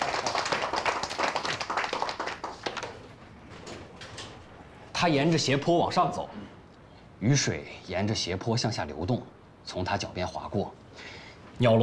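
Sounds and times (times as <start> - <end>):
audience applause: 0.0 - 3.1
speech: 5.0 - 6.4, 7.2 - 11.8.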